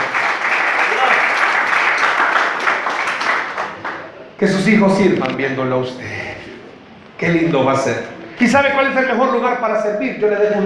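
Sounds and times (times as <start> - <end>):
audience applause: 0.0 - 4.2
speech: 4.4 - 6.2, 7.2 - 10.6.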